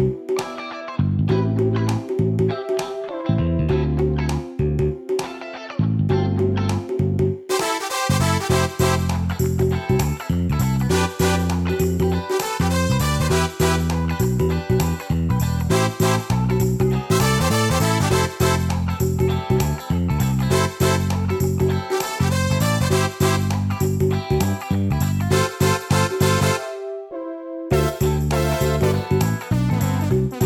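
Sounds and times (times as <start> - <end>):
pop backing track: 0.0 - 27.1, 27.7 - 30.4.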